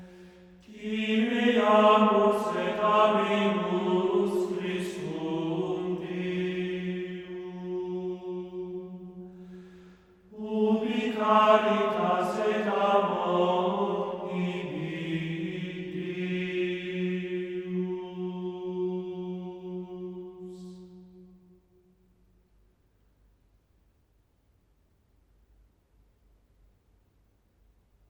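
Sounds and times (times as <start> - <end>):
Gregorian chant antiphon: 0.0 - 9.6, 10.3 - 21.6.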